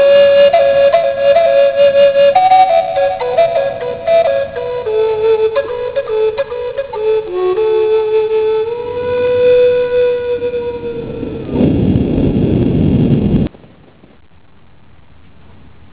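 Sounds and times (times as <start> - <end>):
flute: 0.0 - 11.6
thunder: 10.8 - 14.2.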